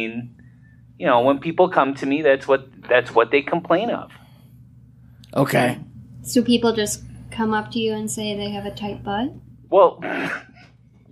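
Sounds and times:
speech: 0.0 - 0.4, 1.0 - 4.2, 5.3 - 10.6
person sneezing: 10.0 - 10.6.

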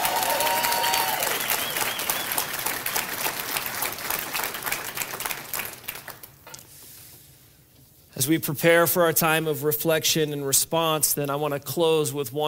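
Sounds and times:
round of applause: 0.0 - 6.4
speech: 8.2 - 12.4.

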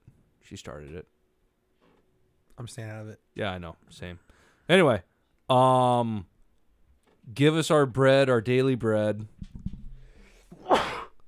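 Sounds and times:
speech: 0.5 - 1.2, 2.6 - 6.3, 7.2 - 9.4
person sneezing: 10.5 - 11.2.

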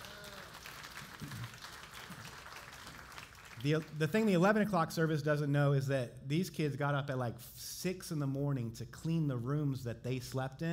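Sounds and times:
church congregation applause at a Vineyard service: 0.0 - 4.0
speech: 3.6 - 10.7.

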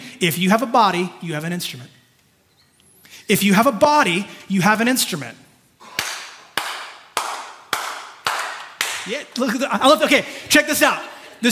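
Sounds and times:
speech: 0.2 - 2.0, 3.3 - 5.4, 9.0 - 11.5
audience members clapping in unison in a large room: 5.8 - 9.5.

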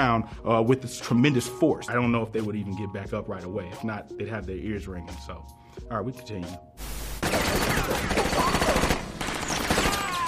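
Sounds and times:
speech: 0.0 - 8.8
automatic gunfire in a movie scene: 7.2 - 10.2.

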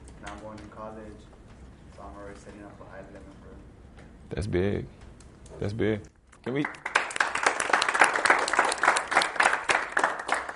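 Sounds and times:
speech: 0.5 - 1.4, 2.0 - 6.9
audience clapping: 6.5 - 10.5.

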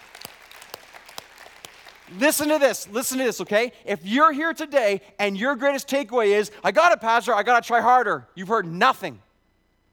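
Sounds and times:
audience clapping: 0.0 - 2.8
speech: 2.1 - 9.2.

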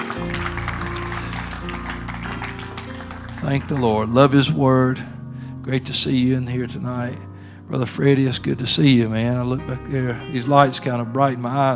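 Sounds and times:
audience applause: 0.0 - 5.0
speech: 3.4 - 11.7.

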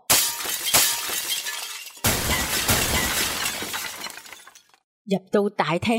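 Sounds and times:
antiques falling to a hall floor and shattering: 0.0 - 4.8
speech: 5.1 - 5.9.

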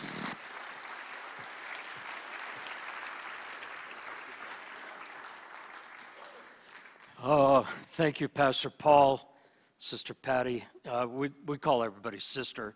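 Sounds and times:
congregation clapping to welcome a guest speaker at a morning church service: 0.0 - 7.5
speech: 7.2 - 12.7.

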